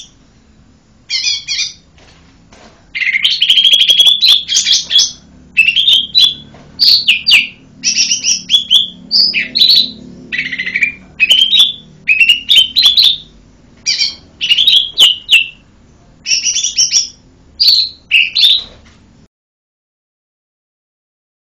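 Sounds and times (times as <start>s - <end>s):
bird singing lively high chirped phrases: 1.1s - 1.9s, 3.0s - 18.8s.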